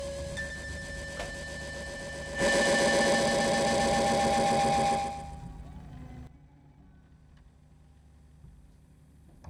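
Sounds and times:
tape recorder echo mode composition on Grundig TK 747: 0.0 - 6.2.

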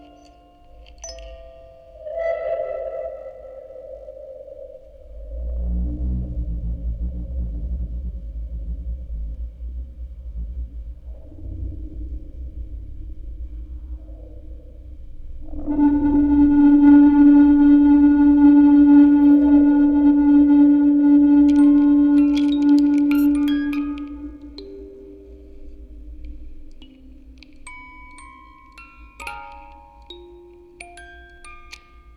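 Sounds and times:
music box quartet: 0.0 - 2.5, 21.4 - 32.1
field recording ambience: 0.0 - 32.1
tape recorder sounds: 21.4 - 32.1.

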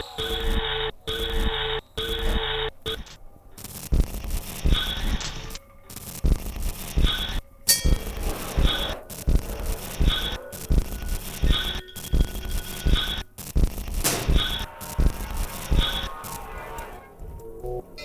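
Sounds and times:
street ambience on Rua da Alfandega in Lisbon: 0.0 - 18.0.

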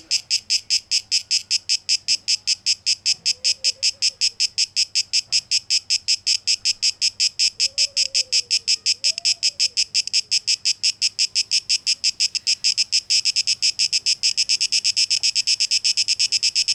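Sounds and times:
cicadas pulsing buzz: 0.0 - 16.7.

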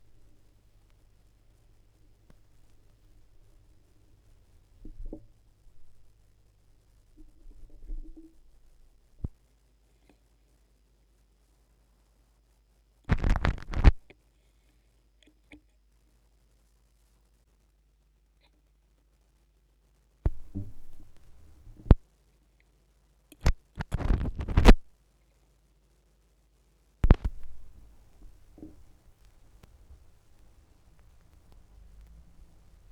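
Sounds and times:
vinyl record noise: 0.0 - 9.6, 13.1 - 14.1, 20.2 - 22.0, 23.3 - 25.0, 27.0 - 32.9.

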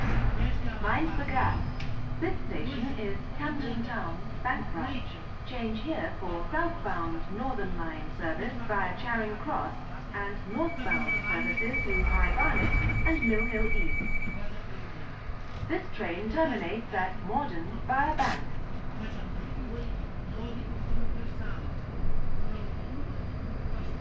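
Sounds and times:
London Underground train: 0.0 - 23.9.

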